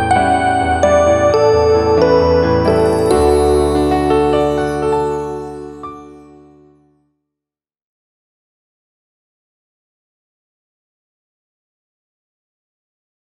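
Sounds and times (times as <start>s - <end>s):
calm music: 0.0s - 7.2s.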